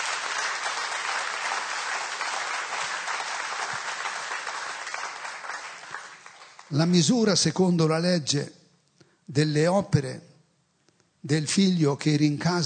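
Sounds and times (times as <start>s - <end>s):
large gathering applause: 0.0s - 6.7s
speech: 6.7s - 8.6s, 9.3s - 10.3s, 11.2s - 12.6s.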